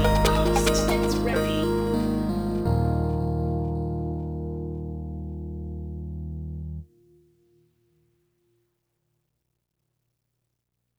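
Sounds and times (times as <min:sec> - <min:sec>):
opening background music: 0:00.0 - 0:05.7.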